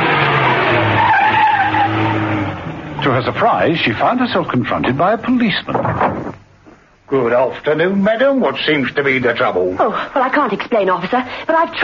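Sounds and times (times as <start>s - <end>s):
wavering tire squeal of a car skidding: 0.0s - 2.7s
car engine: 0.0s - 6.5s
speech: 3.2s - 6.2s, 7.1s - 11.8s.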